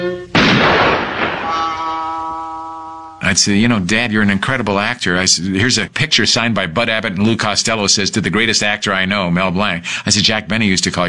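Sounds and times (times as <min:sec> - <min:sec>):
cartoon gun gunshot: 0:00.3 - 0:02.2
steady sustained tones: 0:01.2 - 0:03.6
speech: 0:03.3 - 0:11.0.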